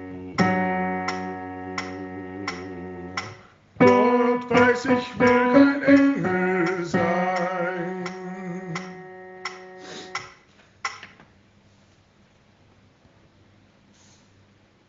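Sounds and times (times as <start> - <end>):
bass at original tempo: 0.0 - 7.3.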